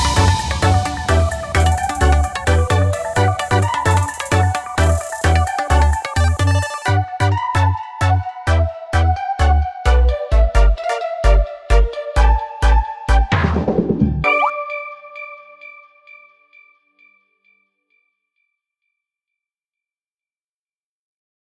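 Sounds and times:
cheerful music: 0.0 - 16.4.

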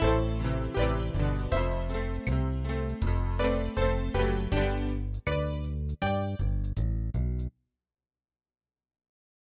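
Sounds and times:
MIDI music: 0.0 - 7.5.

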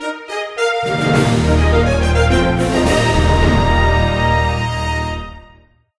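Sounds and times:
game win jingle: 0.8 - 4.7.

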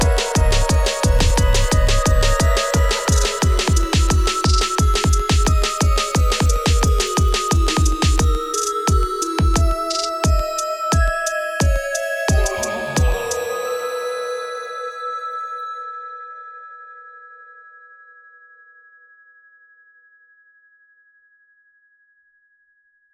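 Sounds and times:
spooky instrumental music mix: 0.0 - 10.4, 11.0 - 14.6.

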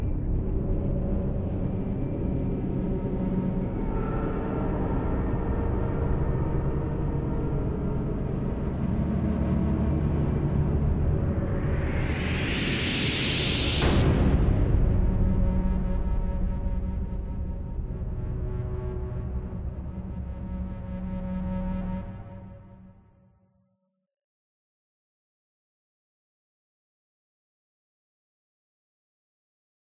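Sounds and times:
dark drone: 0.0 - 23.2.

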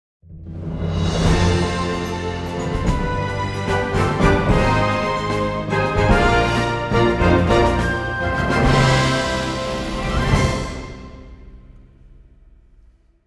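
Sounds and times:
victory jingle: 1.1 - 11.6.

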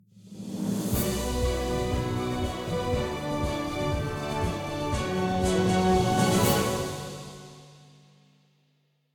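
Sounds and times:
epilogue music: 0.2 - 8.4.

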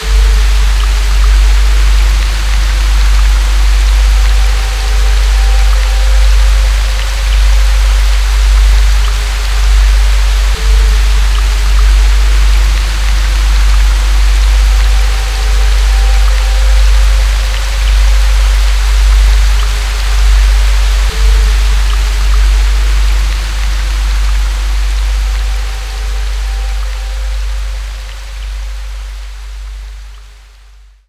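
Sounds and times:
haunted rain: 0.0 - 31.0.

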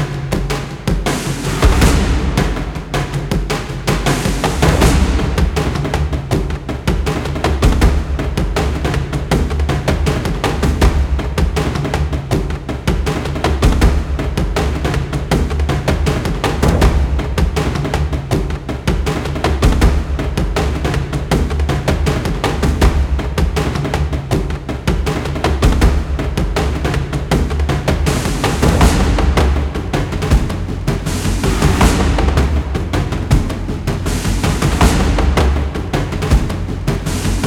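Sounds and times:
battle drums music: 0.0 - 37.4.

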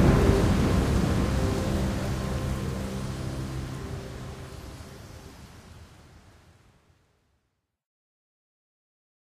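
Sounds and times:
hospital music: 0.0 - 5.4.

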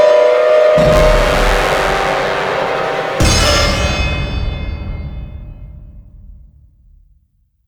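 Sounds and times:
large string section: 0.2 - 4.9.

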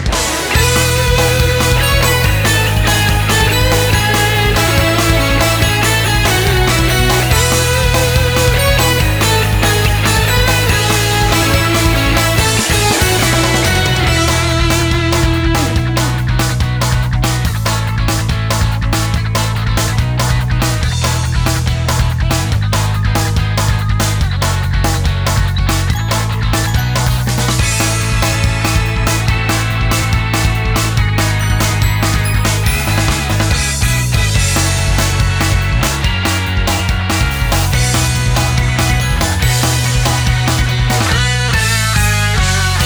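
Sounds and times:
short ending theme karaoke: 0.1 - 42.8.

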